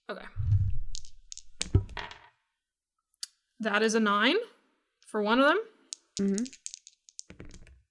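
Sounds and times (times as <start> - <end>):
speech: 0.1 - 0.4, 3.6 - 6.7
dice rolled during a tabletop roleplaying game: 0.7 - 2.3, 5.9 - 7.8.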